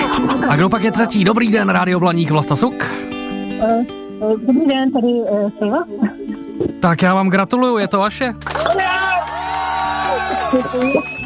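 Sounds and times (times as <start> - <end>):
laughter: 0.0 - 1.2, 9.7 - 11.2
speech: 0.5 - 3.0, 3.6 - 9.3, 10.5 - 11.2
many people's voices cheering behind a radio caller during a celebration: 8.4 - 11.2.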